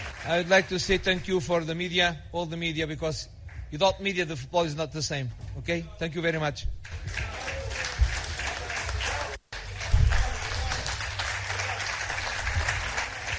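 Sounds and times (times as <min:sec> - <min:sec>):
journalists applauding: 0:00.0 - 0:01.2, 0:06.8 - 0:13.3
speech: 0:00.2 - 0:07.5.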